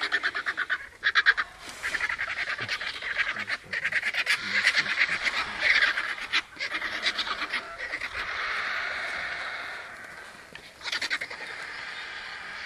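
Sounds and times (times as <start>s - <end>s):
vulture chattering: 0.0s - 12.6s.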